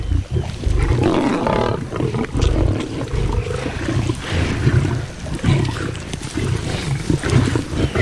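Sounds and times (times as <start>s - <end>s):
lions fighting over a zebra kill: 0.0s - 8.0s.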